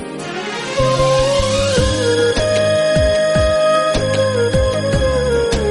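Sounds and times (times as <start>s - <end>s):
instrumental ringtone: 0.2s - 5.6s.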